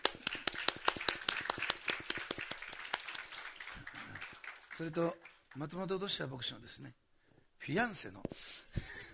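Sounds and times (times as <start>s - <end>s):
audience applause: 0.0s - 5.7s
speech: 4.8s - 7.0s, 7.7s - 8.8s.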